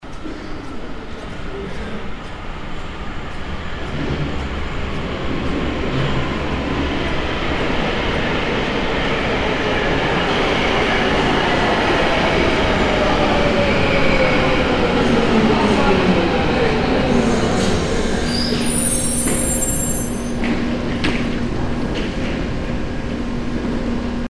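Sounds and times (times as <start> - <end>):
subway train arriving: 0.0 - 24.2.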